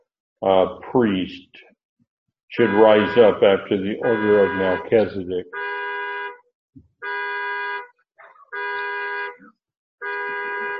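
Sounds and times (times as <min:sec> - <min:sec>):
speech: 0:00.4 - 0:01.7, 0:02.5 - 0:05.8
car horn honking: 0:02.6 - 0:10.7.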